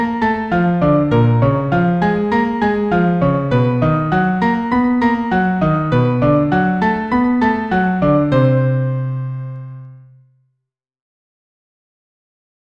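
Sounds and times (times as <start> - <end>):
Arp Ex 2 100 synthesizer keyboard: 0.0 - 10.2.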